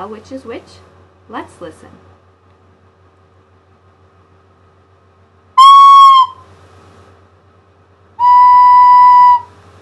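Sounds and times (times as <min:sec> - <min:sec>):
speech: 0:00.0 - 0:02.1
recorder played softly then blown hard: 0:05.6 - 0:06.4, 0:08.2 - 0:09.5.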